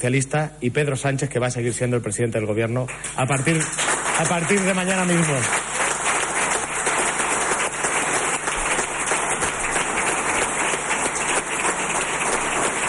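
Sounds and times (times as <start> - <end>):
speech: 0.0 - 5.7
crowd applauding: 2.9 - 12.8.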